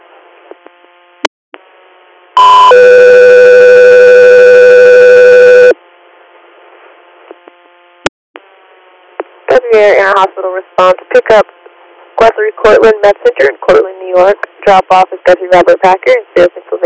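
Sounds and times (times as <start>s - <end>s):
low hum of radio static: 1.6s - 16.8s
radio dispatch electronic alert tone: 2.4s - 3.8s
speech: 10.1s - 11.6s, 12.5s - 16.8s.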